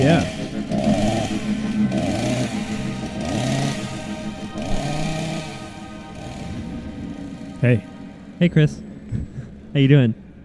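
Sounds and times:
speech: 0.0s - 0.4s, 7.6s - 10.2s
small chainsaw engine revving: 0.0s - 7.6s.

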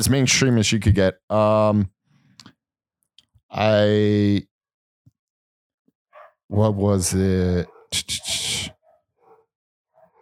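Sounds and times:
speech: 0.0s - 2.0s, 3.5s - 4.5s, 6.5s - 8.8s
dogs going wild: 6.1s - 6.7s, 7.6s - 10.2s.

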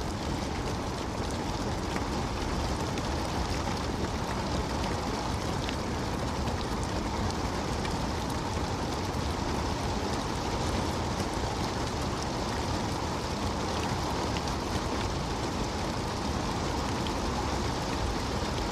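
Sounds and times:
rain: 0.0s - 18.7s.

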